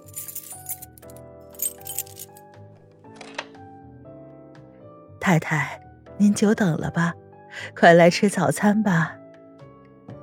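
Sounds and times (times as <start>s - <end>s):
keys jangling as a drawer is opened: 0.0s - 2.5s
soft sustained music: 0.0s - 10.2s
speech: 5.3s - 9.2s.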